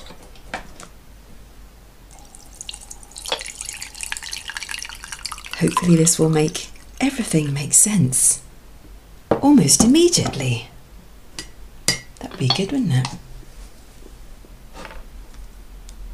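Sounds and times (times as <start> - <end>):
tea pouring: 2.1 - 8.2
speech: 5.6 - 8.5, 9.4 - 10.7, 12.4 - 13.3.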